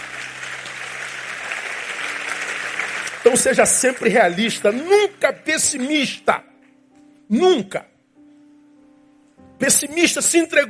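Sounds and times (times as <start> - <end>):
audience applauding: 0.0 - 5.5
speech: 3.2 - 6.5, 7.3 - 7.9, 9.6 - 10.6.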